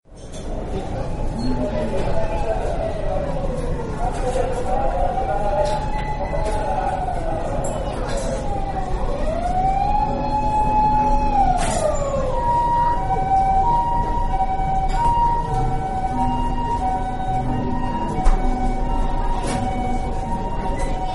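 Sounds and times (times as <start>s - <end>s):
cafeteria ambience: 0.1s - 21.1s.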